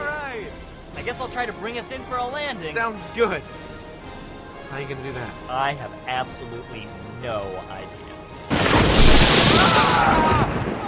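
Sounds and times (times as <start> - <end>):
speech: 1.0 - 3.7, 4.7 - 8.1, 9.7 - 10.8
lightning strike: 8.5 - 10.8.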